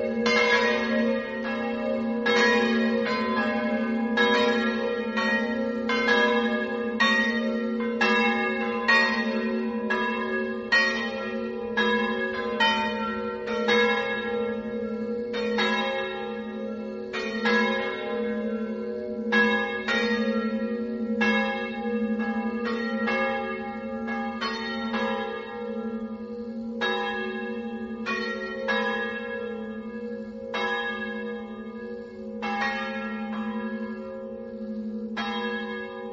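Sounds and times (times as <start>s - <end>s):
castle bells: 0.0s - 36.1s.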